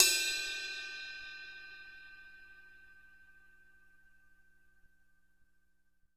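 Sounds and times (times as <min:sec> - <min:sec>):
crash cymbal bell: 0:00.0 - 0:03.6.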